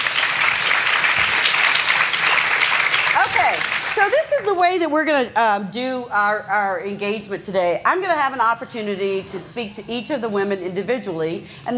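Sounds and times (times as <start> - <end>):
audience applause: 0.0 - 4.2
speech: 3.5 - 11.7.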